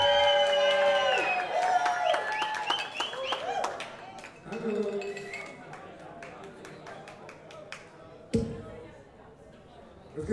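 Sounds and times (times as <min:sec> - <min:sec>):
audience applause and cheering: 0:00.0 - 0:07.3.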